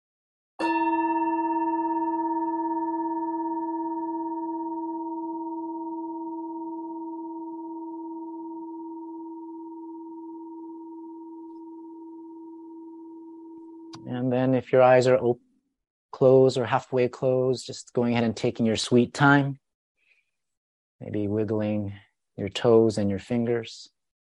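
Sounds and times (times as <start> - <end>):
meditation bell ringing: 0.6 - 14.2
speech: 14.3 - 15.4, 16.2 - 19.6, 21.0 - 24.0.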